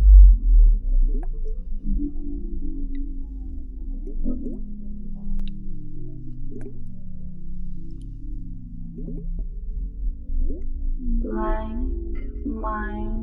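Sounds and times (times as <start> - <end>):
water dripping: 0.0 - 11.4
low slowly sweeping underwater drone: 0.0 - 13.2.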